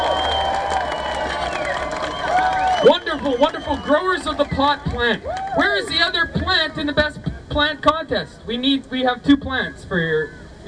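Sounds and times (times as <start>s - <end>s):
crowd applause: 0.0s - 5.8s
speech: 2.8s - 10.6s.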